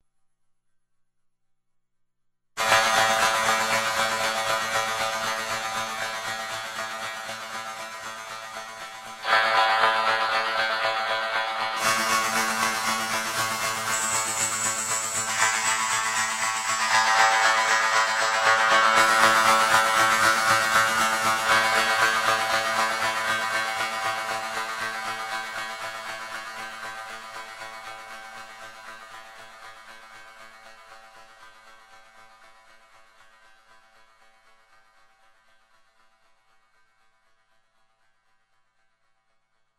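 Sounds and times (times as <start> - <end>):
sitar: 2.6 - 31.4
shaker: 2.6 - 39.6.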